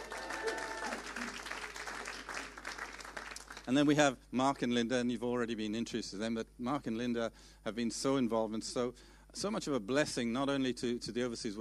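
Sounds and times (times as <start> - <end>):
audience clapping: 0.0 - 3.9
speech: 3.7 - 11.6.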